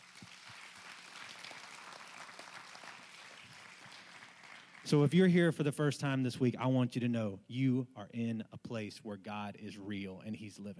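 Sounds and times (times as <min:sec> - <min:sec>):
audience clapping: 0:00.0 - 0:05.1
speech: 0:04.8 - 0:10.7.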